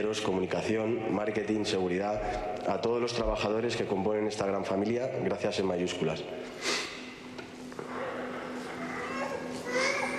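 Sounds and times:
speech: 0:00.0 - 0:06.8
dense continuous murmur of noise: 0:00.0 - 0:10.1
young children and a baby fussing and babbling at a farewell speech: 0:08.7 - 0:10.1.

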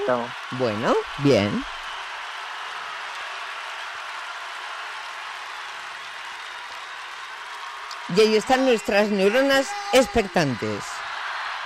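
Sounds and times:
speech: 0:00.0 - 0:01.8, 0:08.1 - 0:11.1
concert crowd applause: 0:00.0 - 0:11.6.

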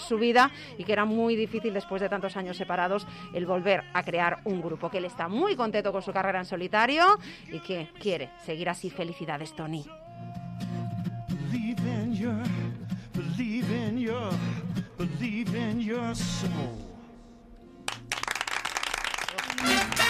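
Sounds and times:
voices with harmonic sing-song tones: 0:00.0 - 0:17.6
speech: 0:00.1 - 0:10.4, 0:11.5 - 0:16.9
audience applause: 0:17.9 - 0:20.0.

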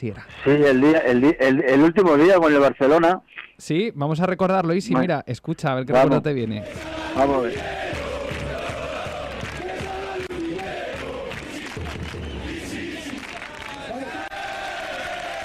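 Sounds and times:
speech: 0:00.0 - 0:07.8
huge stadium crowd chanting and cheering: 0:06.6 - 0:15.4.

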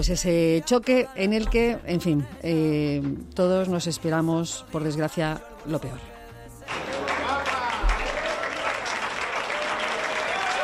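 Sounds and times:
speech: 0:00.0 - 0:06.8
applause: 0:06.7 - 0:10.6.

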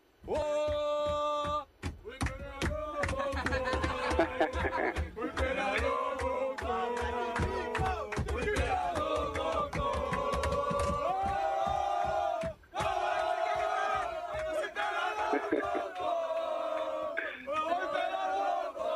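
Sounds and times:
rhythmic claps or beats: 0:00.2 - 0:18.9
team chanting a song on a bus: 0:02.7 - 0:18.9
laughter: 0:03.0 - 0:05.6, 0:15.1 - 0:18.4.

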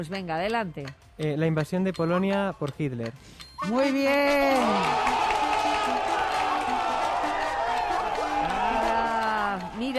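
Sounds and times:
speech: 0:00.0 - 0:05.2
crowd clapping and cheering: 0:04.2 - 0:09.9
excited voices shouting: 0:04.5 - 0:09.8.

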